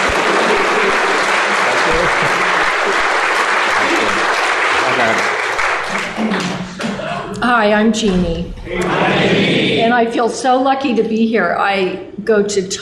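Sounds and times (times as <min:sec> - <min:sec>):
laughter: 0:00.0 - 0:05.2, 0:05.8 - 0:07.4, 0:08.7 - 0:10.0
audience applause: 0:00.0 - 0:07.0
speech: 0:07.6 - 0:12.8.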